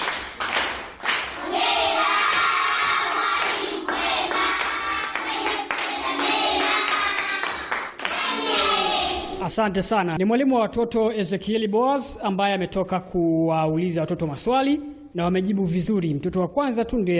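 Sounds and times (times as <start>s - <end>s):
children on a Radio Joy children's program applauding their teacher: 0.0s - 9.0s
children shouting and cheering: 1.4s - 9.4s
speech: 9.6s - 17.1s.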